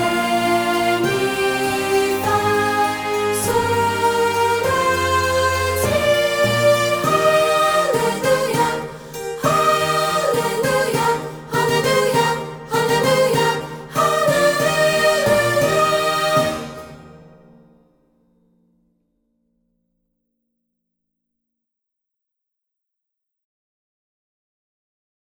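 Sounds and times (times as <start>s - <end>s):
person singing a vocalise on solfege syllables: 0.0s - 16.9s.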